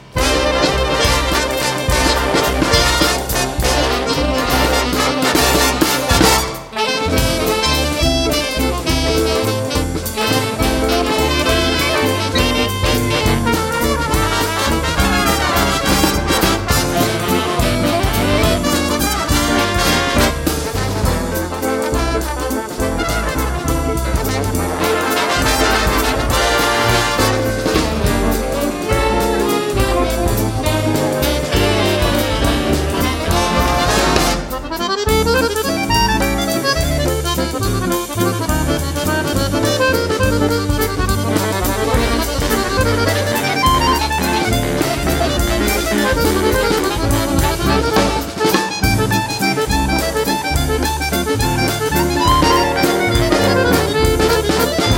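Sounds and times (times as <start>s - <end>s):
swing waltz music: 0.0s - 54.9s.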